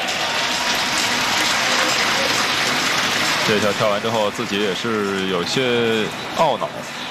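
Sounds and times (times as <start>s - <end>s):
audience applause: 0.0s - 5.2s
speech: 3.5s - 7.0s.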